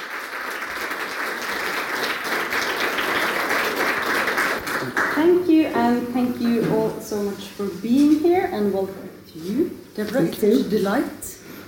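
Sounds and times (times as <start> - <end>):
audience applause welcoming a writer and a critic at a literary event in Oslo: 0.0 - 5.2
speech: 5.9 - 11.3.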